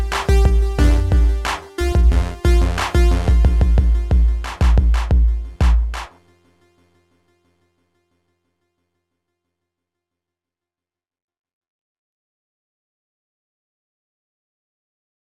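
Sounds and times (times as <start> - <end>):
music beat: 0.0 - 6.2.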